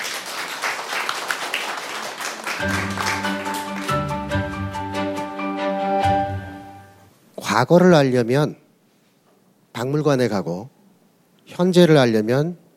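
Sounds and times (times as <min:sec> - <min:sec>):
audience applause: 0:00.0 - 0:04.6
speech: 0:02.6 - 0:03.3, 0:07.6 - 0:08.6, 0:09.8 - 0:10.8, 0:11.5 - 0:12.6
bright instrumental tune with sustained notes: 0:02.6 - 0:07.1.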